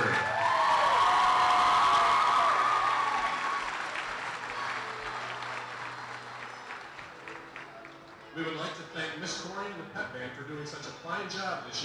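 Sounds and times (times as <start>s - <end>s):
audience applause: 0.0s - 8.2s.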